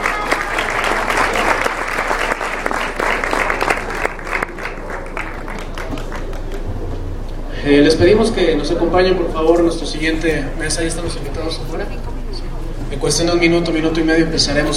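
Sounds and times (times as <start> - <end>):
audience applause at a conference honoring deputies: 0.0 - 7.0
speech: 7.6 - 12.1, 13.0 - 14.7.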